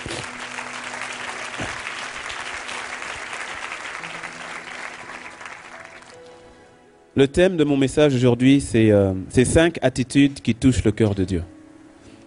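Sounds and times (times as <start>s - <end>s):
congregation applauding the word of God during a church service: 0.0s - 6.4s
speech: 7.2s - 11.5s.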